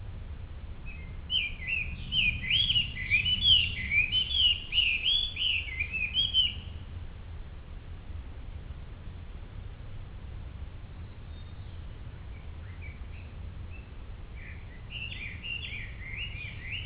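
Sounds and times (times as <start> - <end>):
birds: 0.9 - 6.9, 10.9 - 16.8.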